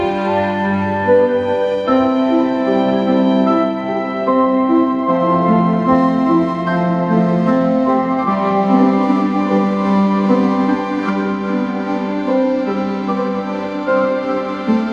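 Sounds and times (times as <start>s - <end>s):
piano: 0.0s - 14.9s
strings: 0.0s - 14.9s.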